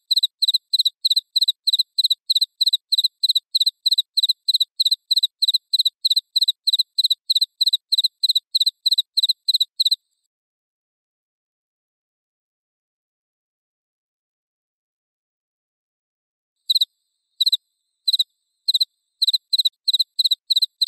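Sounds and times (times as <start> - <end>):
cricket chirping: 0.0 - 10.0, 16.7 - 20.8.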